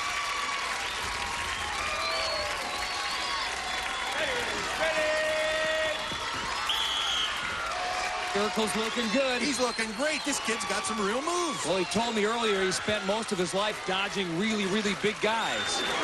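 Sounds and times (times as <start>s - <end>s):
large crowd cheering and applauding: 0.0s - 16.0s
whistles: 0.8s - 4.4s, 5.7s - 7.6s, 9.3s - 10.7s, 15.4s - 16.0s
speech: 8.4s - 16.0s.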